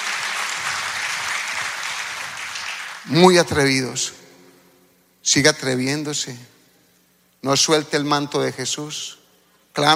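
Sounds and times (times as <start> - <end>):
audience clapping: 0.0 - 3.1
speech: 3.0 - 4.2, 5.2 - 6.6, 7.4 - 9.2, 9.8 - 9.9.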